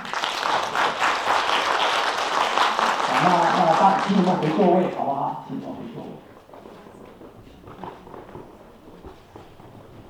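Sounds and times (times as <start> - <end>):
audience applause: 0.0 - 5.1
speech: 4.1 - 6.4.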